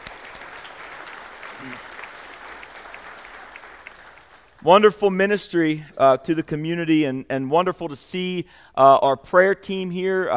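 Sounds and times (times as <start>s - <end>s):
audience applause: 0.0s - 4.6s
speech: 4.6s - 10.3s.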